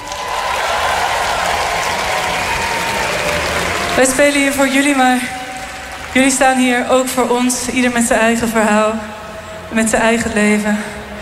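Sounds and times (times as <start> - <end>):
festival tent audience applauding: 0.0 - 7.8
speech: 4.0 - 5.4, 6.1 - 11.0.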